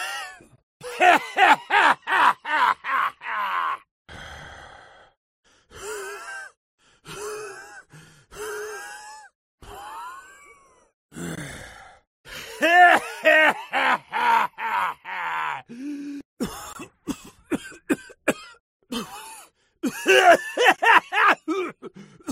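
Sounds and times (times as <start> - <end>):
clown laughing: 0.8 - 3.8, 12.6 - 15.7, 20.0 - 21.5.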